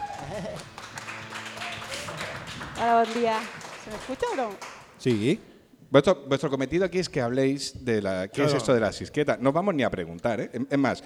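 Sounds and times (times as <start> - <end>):
audience applause: 0.0 - 5.0
speech: 0.4 - 1.0, 2.8 - 11.0.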